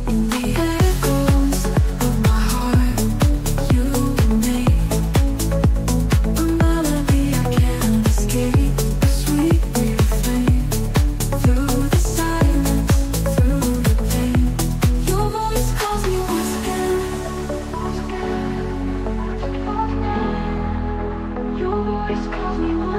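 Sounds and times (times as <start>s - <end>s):
atmospheric deep house and chillstep music: 0.0s - 22.9s.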